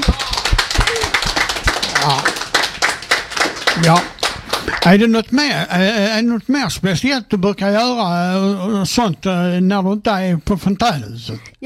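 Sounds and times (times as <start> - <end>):
scattered applause from a small group: 0.0 - 5.1
speech: 2.0 - 2.4, 3.8 - 11.6.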